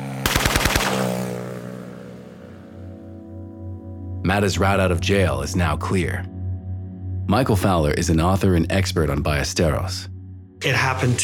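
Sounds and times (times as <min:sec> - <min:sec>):
gunfire from a motorcycle drive-by shooting: 0:00.1 - 0:01.6
speech: 0:04.3 - 0:06.4, 0:07.3 - 0:11.2.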